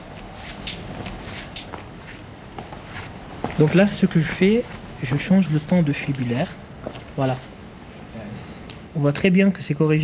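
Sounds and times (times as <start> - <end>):
footsteps of a patient walking at a normal pace: 0.0 - 7.6
low continuous hiss: 0.0 - 10.0
speech: 3.6 - 6.6, 7.2 - 7.5, 9.0 - 10.0.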